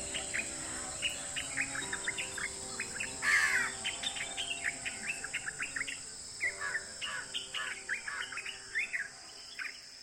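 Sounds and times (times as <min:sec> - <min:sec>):
birds singing in the morning: 0:00.0 - 0:09.8.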